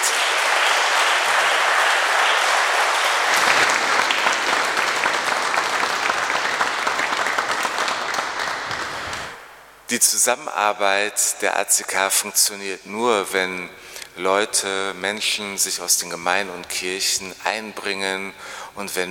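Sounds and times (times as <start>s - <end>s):
audience clapping: 0.0s - 9.5s
speech: 9.9s - 19.1s.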